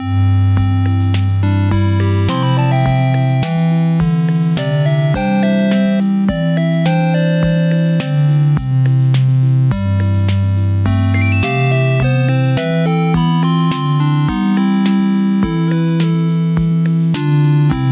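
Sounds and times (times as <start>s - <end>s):
upbeat 8-bit music: 0.0s - 17.8s.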